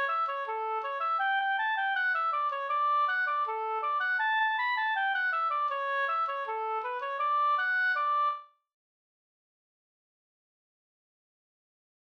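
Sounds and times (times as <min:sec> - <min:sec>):
folk walking tune: 0:00.0 - 0:08.4.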